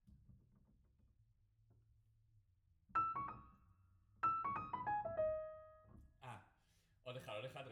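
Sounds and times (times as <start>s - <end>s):
piano: 2.9s - 6.6s.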